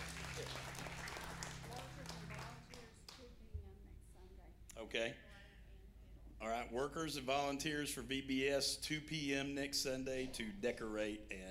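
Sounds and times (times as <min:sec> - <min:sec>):
audience clapping: 0:00.0 - 0:03.3
speech: 0:00.4 - 0:00.8, 0:04.8 - 0:05.3, 0:06.4 - 0:11.4.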